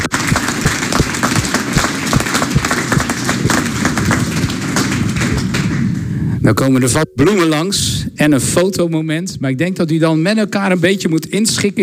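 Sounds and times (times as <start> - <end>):
applause: 0.0 - 6.1
speech: 6.4 - 11.8.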